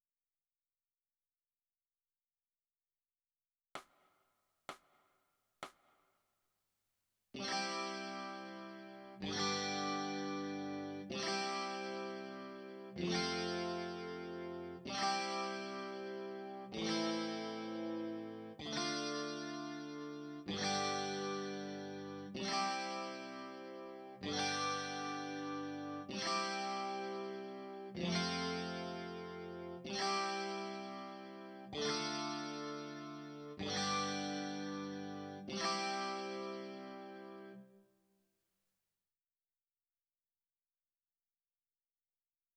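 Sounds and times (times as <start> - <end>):
electric guitar: 7.4 - 37.6.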